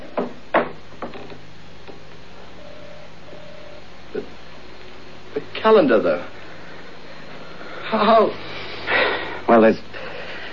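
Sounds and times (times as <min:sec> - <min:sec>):
stuck door being forced with wooden thumps and rattles: 0:00.0 - 0:02.0
steady low hum: 0:00.0 - 0:10.5
faint tones: 0:01.1 - 0:10.5
speech: 0:05.6 - 0:06.4, 0:07.9 - 0:08.4, 0:09.5 - 0:09.9.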